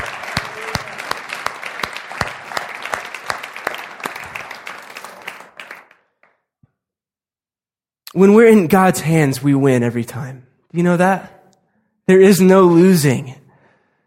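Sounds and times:
audience clapping: 0.0s - 6.5s
speech: 8.2s - 11.4s, 12.1s - 13.4s.

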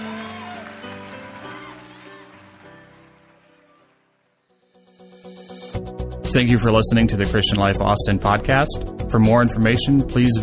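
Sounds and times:
audience hand clapping: 0.0s - 4.4s
music: 0.0s - 10.4s
speech: 6.3s - 10.4s.

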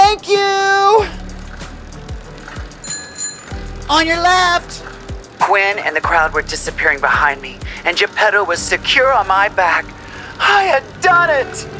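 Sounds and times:
bicycle rolling along: 0.0s - 11.7s
bicycle bell ringing: 2.4s - 5.1s
speech: 3.9s - 4.6s, 5.5s - 11.7s.

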